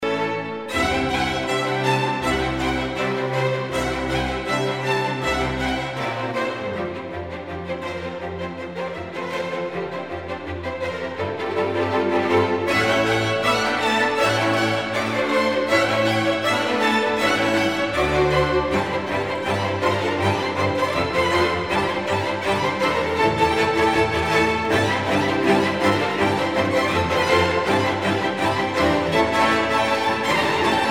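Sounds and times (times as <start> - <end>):
orchestra playing folk dances: 0.0 - 30.9.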